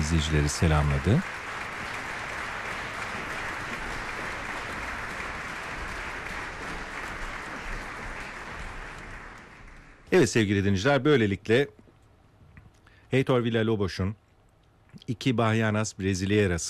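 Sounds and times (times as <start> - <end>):
concert audience applause: 0.0 - 10.4
speech: 0.1 - 1.4, 10.1 - 11.8, 13.1 - 14.2, 14.9 - 16.6.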